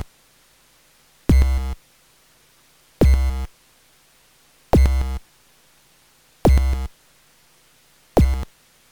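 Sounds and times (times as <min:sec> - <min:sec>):
bass drum: 0:01.3 - 0:01.8, 0:03.0 - 0:03.5, 0:04.8 - 0:05.2, 0:06.5 - 0:06.9, 0:08.2 - 0:08.5.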